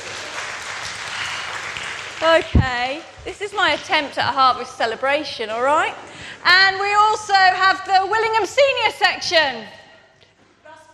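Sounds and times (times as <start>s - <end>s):
crowd applause: 0.0s - 2.4s
speech: 2.2s - 9.8s.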